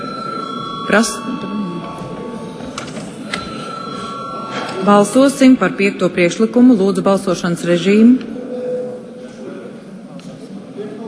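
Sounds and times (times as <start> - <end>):
bell rung to call a vote: 0.0 - 7.3
faint murmuring voices: 0.0 - 11.0
speech: 0.9 - 1.5, 4.8 - 8.3.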